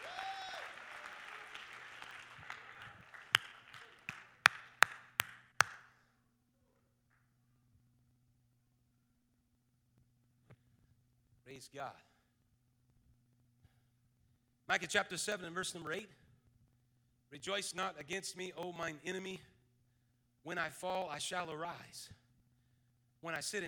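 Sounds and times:
audience clapping: 0.0s - 5.9s
speech: 11.6s - 12.1s, 14.7s - 16.2s, 17.3s - 19.5s, 20.4s - 22.2s, 23.2s - 23.6s.

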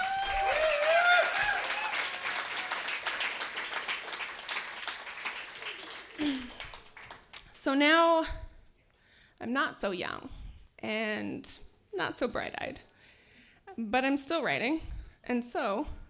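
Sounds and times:
cheers and whoops: 0.0s - 3.4s
crowd round of applause: 0.0s - 7.3s
speech: 7.6s - 8.4s, 9.4s - 12.9s, 13.8s - 16.0s.

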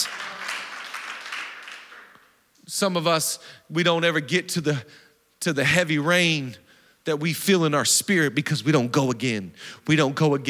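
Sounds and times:
audience clapping: 0.0s - 2.4s
speech: 2.8s - 10.4s.

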